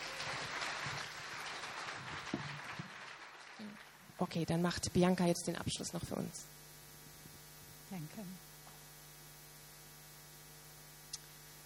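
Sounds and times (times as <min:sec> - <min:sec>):
audience applause: 0:00.0 - 0:04.1
speech: 0:04.2 - 0:06.6, 0:07.9 - 0:08.5.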